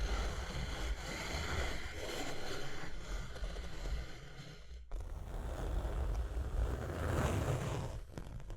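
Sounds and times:
steady low rumble: 0.0s - 4.9s
bright rough scratching: 0.0s - 8.0s.

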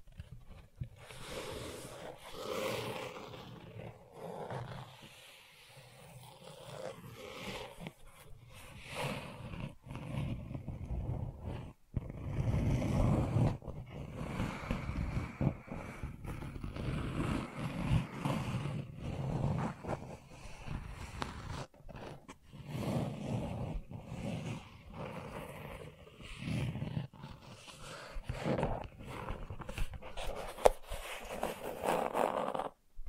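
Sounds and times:
gentle scratching: 0.0s - 33.0s.

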